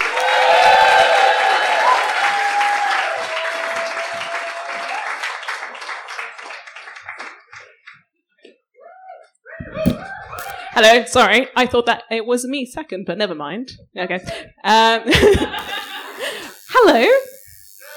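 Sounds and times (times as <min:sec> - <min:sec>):
audience applause welcoming a comedian at a stand-up show: 0:00.0 - 0:07.9
speech: 0:10.8 - 0:15.9, 0:16.8 - 0:17.3
laughter: 0:15.1 - 0:16.4.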